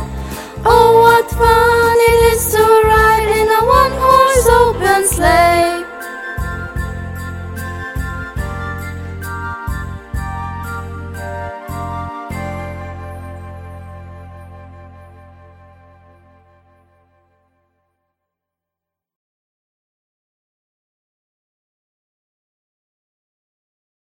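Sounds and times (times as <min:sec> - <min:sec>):
christmas song: 0:00.0 - 0:17.1.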